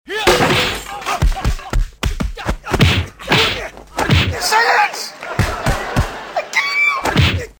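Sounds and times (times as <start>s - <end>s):
fight sounds: 0.1s - 6.2s, 7.0s - 7.5s
laughter: 4.4s - 7.5s.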